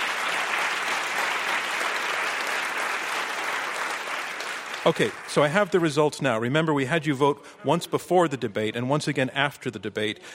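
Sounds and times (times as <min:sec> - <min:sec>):
audience round of applause: 0:00.0 - 0:05.9
speech: 0:04.8 - 0:10.3.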